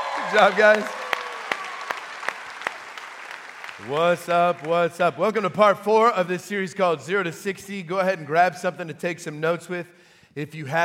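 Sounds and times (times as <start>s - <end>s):
audience applauding a pit crew: 0.0s - 5.0s
speech: 0.3s - 1.0s, 3.8s - 10.8s.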